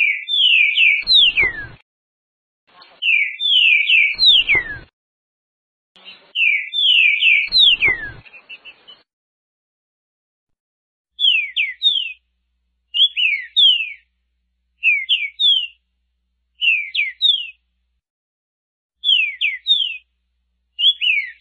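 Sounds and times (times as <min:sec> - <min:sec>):
green-winged saltator singing slurred falling whistles: 0:00.0 - 0:01.8, 0:03.0 - 0:04.9, 0:06.3 - 0:08.7, 0:11.2 - 0:12.2, 0:13.0 - 0:14.0, 0:14.8 - 0:15.8, 0:16.6 - 0:17.6, 0:19.0 - 0:20.0, 0:20.8 - 0:21.3.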